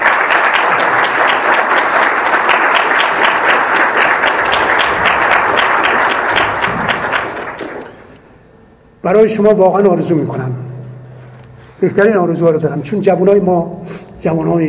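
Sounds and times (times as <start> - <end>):
audience applause at a talk to young people: 0.0 - 8.1
speech: 9.1 - 10.7, 11.8 - 14.6.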